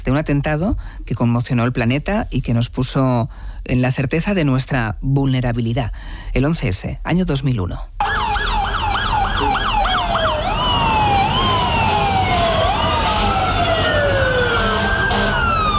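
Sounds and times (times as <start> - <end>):
speech: 0.1 - 8.1
emergency siren wailing: 8.0 - 15.7
traffic rumble: 8.0 - 15.7.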